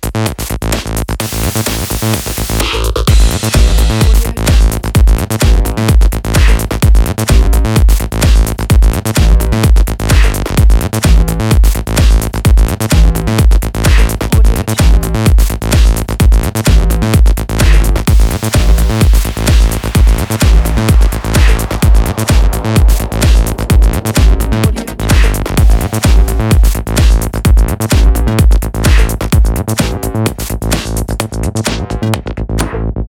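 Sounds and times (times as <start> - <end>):
techno loop: 0.1 - 32.9.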